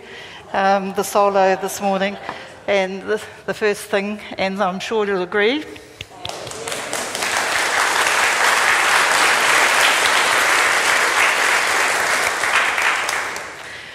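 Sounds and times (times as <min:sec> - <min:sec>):
speech: 0:00.5 - 0:05.8
audience applauding in church: 0:06.0 - 0:13.9.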